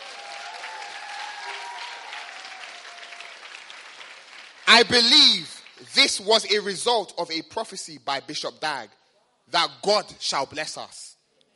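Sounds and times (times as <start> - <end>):
audience clapping: 0.0 - 6.4
speech: 4.7 - 11.0.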